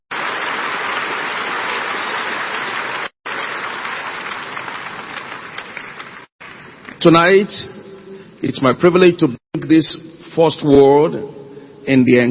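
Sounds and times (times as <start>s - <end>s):
audience clapping: 0.1s - 7.1s
speech: 7.0s - 7.8s, 8.4s - 12.3s.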